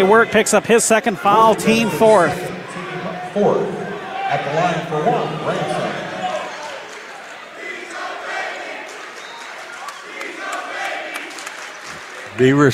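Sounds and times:
speech: 0:00.0 - 0:02.6, 0:03.4 - 0:06.0, 0:12.4 - 0:12.7
crowd chanting a cheer: 0:00.0 - 0:12.4.

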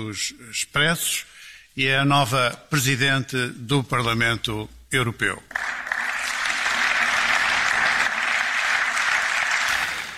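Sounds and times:
speech: 0:00.0 - 0:05.8
large crowd applauding in parliament chamber: 0:05.5 - 0:10.1.

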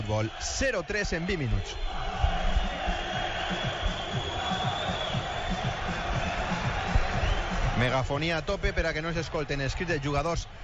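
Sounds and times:
stadium crowd whistling in disapproval at its team: 0:00.0 - 0:10.6
speech: 0:00.1 - 0:04.8, 0:07.8 - 0:10.6.

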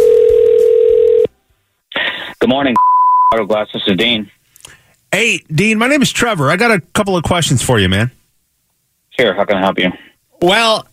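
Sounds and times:
telephone ringing tone: 0:00.0 - 0:01.3
speech: 0:02.4 - 0:04.4, 0:05.1 - 0:08.2, 0:09.2 - 0:10.9.

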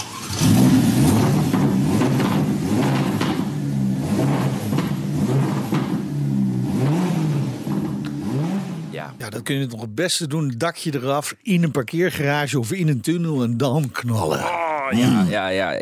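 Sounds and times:
V8 sports car engine revving: 0:00.0 - 0:09.2
speech: 0:09.3 - 0:15.8.

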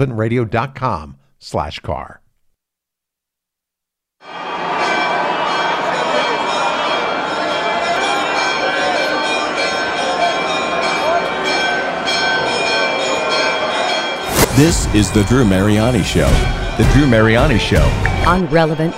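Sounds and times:
speech: 0:00.0 - 0:02.2, 0:14.6 - 0:18.9
church bells pealing at the renovated edicule: 0:04.3 - 0:18.9.

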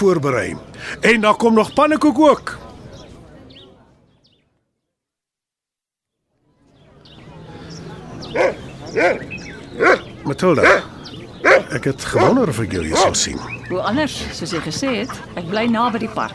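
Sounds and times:
speech: 0:00.0 - 0:02.7, 0:08.4 - 0:16.3
crowd chatter: 0:00.0 - 0:04.6, 0:06.3 - 0:16.3
dog yelping barks: 0:08.3 - 0:13.2.

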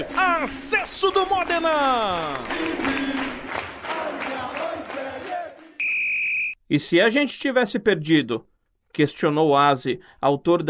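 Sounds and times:
speech: 0:00.0 - 0:03.7, 0:06.7 - 0:10.6
stadium crowd of fans roaring and chanting in celebration: 0:01.8 - 0:05.8.

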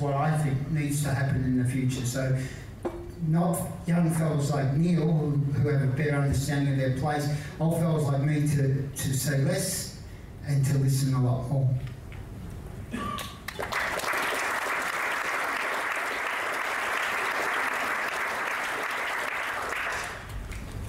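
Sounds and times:
speech: 0:00.0 - 0:11.9
audience applause: 0:13.2 - 0:20.7.

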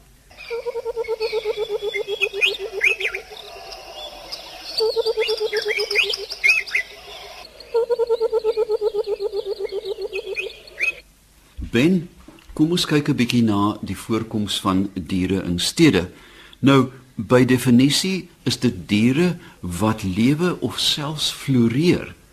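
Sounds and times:
Burchell's coucal calling: 0:00.4 - 0:11.1
speech: 0:11.8 - 0:22.2.

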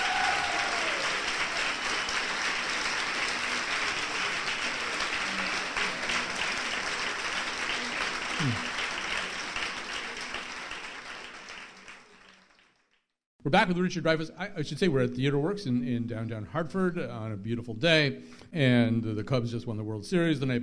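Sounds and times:
audience applause: 0:00.0 - 0:12.9
speech: 0:13.5 - 0:20.6.

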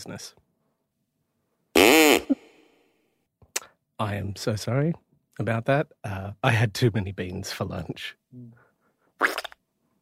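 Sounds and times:
speech: 0:00.0 - 0:00.4, 0:04.0 - 0:08.6, 0:09.2 - 0:09.5
fart: 0:01.8 - 0:02.4, 0:09.2 - 0:09.6.

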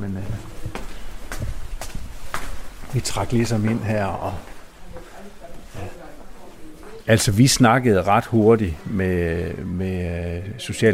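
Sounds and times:
footsteps climbing inside a building: 0:00.0 - 0:07.4
speech: 0:02.9 - 0:04.5, 0:07.1 - 0:10.9.

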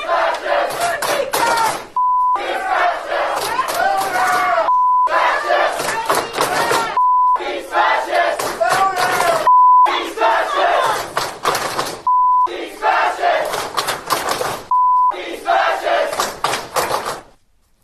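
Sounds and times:
crowd of college students chanting and clapping in protest: 0:00.0 - 0:17.4
short steady mid-pitched bleep: 0:02.0 - 0:02.4, 0:04.7 - 0:05.2, 0:07.0 - 0:07.4, 0:09.5 - 0:09.9, 0:12.1 - 0:12.5, 0:14.7 - 0:15.2.

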